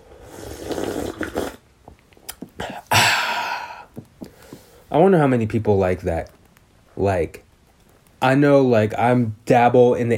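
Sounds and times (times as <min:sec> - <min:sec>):
sipping chamomile tea: 0:00.0 - 0:04.5
speech: 0:05.0 - 0:06.4, 0:07.0 - 0:07.4, 0:08.2 - 0:10.1.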